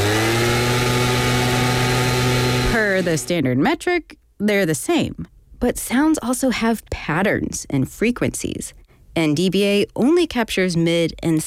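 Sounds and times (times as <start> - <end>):
gas-powered leaf blower running: 0.0 - 3.3
speech: 3.0 - 11.4.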